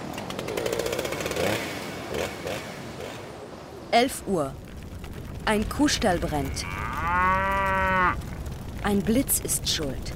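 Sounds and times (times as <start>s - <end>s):
chainsaw cutting a fallen tree: 0.2s - 3.3s
speech: 3.9s - 4.6s, 5.5s - 7.5s, 8.8s - 10.1s.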